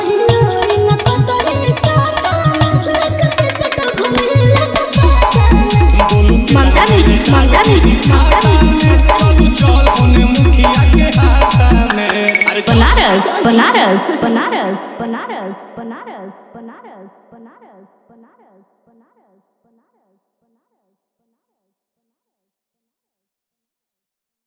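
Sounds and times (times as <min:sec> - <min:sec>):
Bhojpuri DJ remix song: 0:00.0 - 0:15.4.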